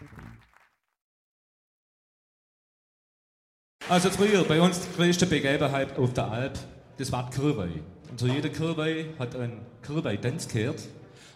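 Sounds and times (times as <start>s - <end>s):
applause: 0.0s - 1.0s, 3.8s - 5.7s
speech: 3.8s - 11.3s.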